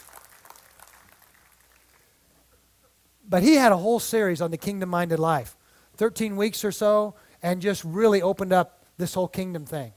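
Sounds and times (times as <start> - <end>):
audience clapping hands: 0.0 - 2.3
speech: 3.3 - 9.9.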